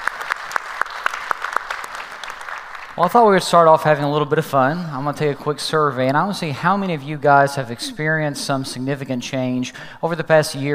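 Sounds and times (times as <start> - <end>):
church congregation clapping to welcome people into a service: 0.0 - 3.9
speech: 3.0 - 10.7.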